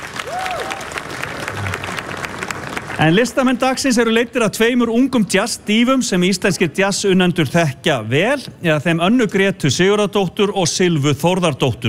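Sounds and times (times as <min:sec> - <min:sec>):
audience applause at a summer jazz concert: 0:00.0 - 0:03.6
speech: 0:03.0 - 0:11.8.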